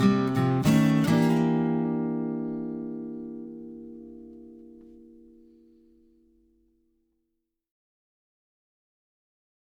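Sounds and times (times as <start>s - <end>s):
guitar playing: 0.0s - 6.8s.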